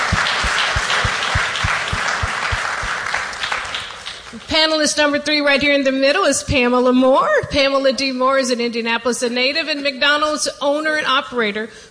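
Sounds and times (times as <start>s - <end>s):
audience applause welcoming a panelist onstage: 0.0s - 4.3s
speech: 4.5s - 11.8s.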